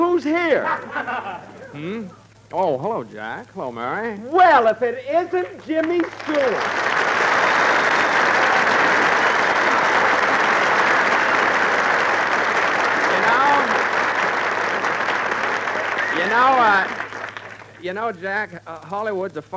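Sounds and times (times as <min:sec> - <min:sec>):
speech: 0:00.2 - 0:07.1, 0:16.3 - 0:17.0, 0:17.8 - 0:19.5
laughter: 0:00.3 - 0:02.0
diners in the Brown Derby applauding: 0:05.1 - 0:18.3.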